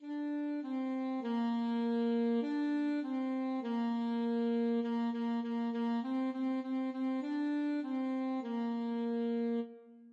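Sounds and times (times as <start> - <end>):
alto saxophone: 0.0 - 10.1.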